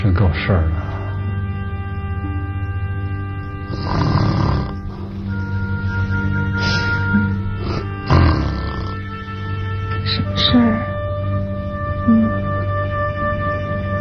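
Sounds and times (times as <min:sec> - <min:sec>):
low hum: 0:00.0 - 0:13.9
speech: 0:00.1 - 0:00.8
loud rough snoring: 0:03.7 - 0:05.0, 0:07.2 - 0:09.1.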